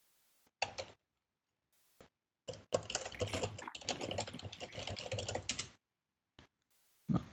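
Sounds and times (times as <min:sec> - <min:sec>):
typing on a computer keyboard: 0:00.6 - 0:01.0, 0:02.5 - 0:05.8.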